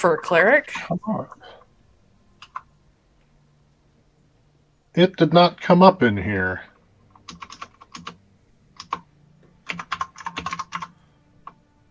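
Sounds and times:
speech: 0:00.0 - 0:01.6, 0:05.0 - 0:06.7
typing on a computer keyboard: 0:02.4 - 0:02.7, 0:07.1 - 0:08.2, 0:08.8 - 0:09.0, 0:09.6 - 0:10.9.

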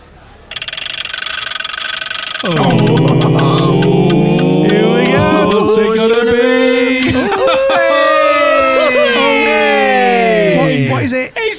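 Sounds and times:
game show prize wheel spinning: 0:00.5 - 0:06.3
speech: 0:02.4 - 0:03.5, 0:05.7 - 0:06.4
loud sustained tonal sound: 0:02.4 - 0:08.0
laughter: 0:02.5 - 0:11.1.

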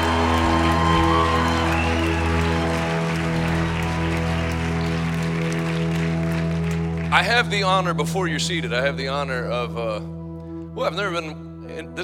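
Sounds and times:
audience clapping for the pastor of the church: 0:00.0 - 0:07.8
speech: 0:07.1 - 0:10.2, 0:10.8 - 0:12.0.

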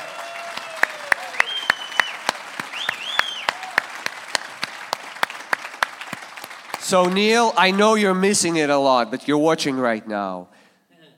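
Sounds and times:
audience clapping: 0:00.0 - 0:08.8
speech: 0:06.9 - 0:10.6.

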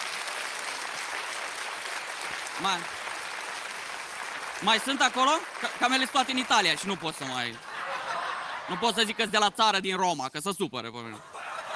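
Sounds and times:
audience applause: 0:00.0 - 0:08.8, 0:11.4 - 0:11.7
speech: 0:02.6 - 0:03.0, 0:04.6 - 0:07.6, 0:08.7 - 0:11.3
laughter: 0:06.9 - 0:09.6, 0:11.1 - 0:11.7.

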